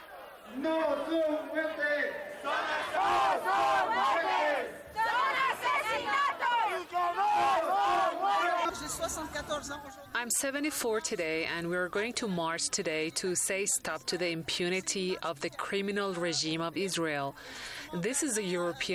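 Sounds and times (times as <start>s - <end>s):
protest rally crowd shouting: 0.0s - 9.8s
speech: 0.5s - 4.8s, 8.7s - 18.9s.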